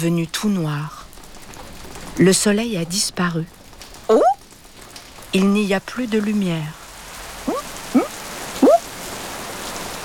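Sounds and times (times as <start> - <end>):
speech: 0.0 - 1.0, 2.2 - 4.3, 5.3 - 6.8
heavy rain falling in big drops: 0.0 - 10.0.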